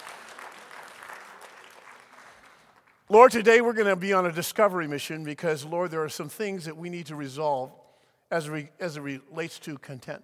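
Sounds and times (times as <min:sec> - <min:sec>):
faint audience applause at a church service: 0:00.0 - 0:03.1
speech: 0:03.1 - 0:10.2.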